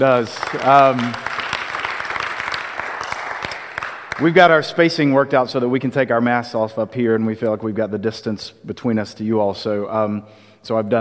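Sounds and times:
speech: 0.0s - 1.3s, 4.2s - 10.9s
audience applauding: 0.0s - 5.1s.

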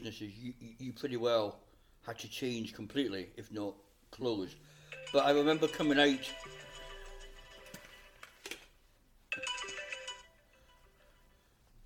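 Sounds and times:
speech: 0.0s - 6.7s
alarm clock ringing with electronic chime: 4.9s - 7.7s, 9.3s - 11.3s.

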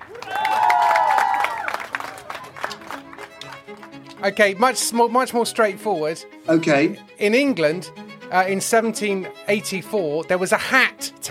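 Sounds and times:
people whooping and cheering: 0.0s - 2.8s
audience round of applause: 0.0s - 4.2s
speech: 4.2s - 11.3s.

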